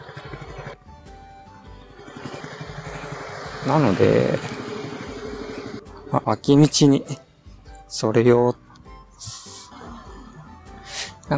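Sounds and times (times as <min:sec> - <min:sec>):
motorcycle-like engine surging: 0:00.0 - 0:00.8, 0:01.6 - 0:07.2
main-road traffic roar: 0:02.0 - 0:06.5
speech: 0:03.6 - 0:04.5, 0:06.1 - 0:07.2, 0:07.9 - 0:08.6.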